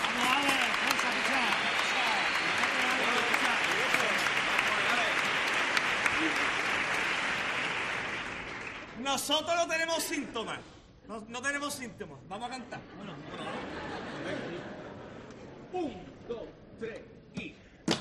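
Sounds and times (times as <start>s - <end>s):
audience applause: 0.0s - 9.0s
speech: 9.2s - 14.5s, 15.7s - 16.0s
laughter: 12.6s - 15.8s.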